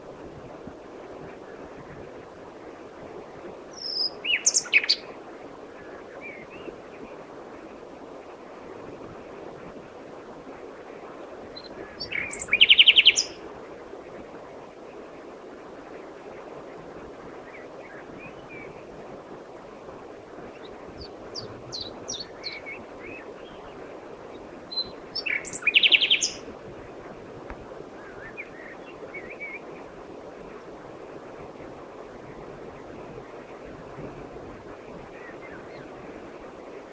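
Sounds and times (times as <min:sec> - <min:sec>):
background hiss: 0:00.0 - 0:36.9
common nightingale song: 0:03.8 - 0:05.1, 0:11.6 - 0:13.4, 0:21.0 - 0:23.7, 0:24.7 - 0:26.5.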